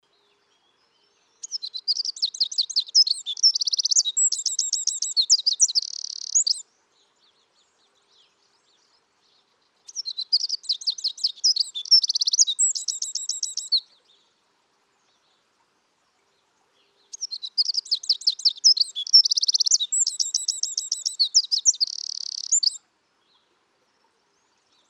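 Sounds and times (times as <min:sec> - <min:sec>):
Eurasian wren song: 0:00.2 - 0:06.7, 0:09.8 - 0:14.2, 0:16.8 - 0:22.8.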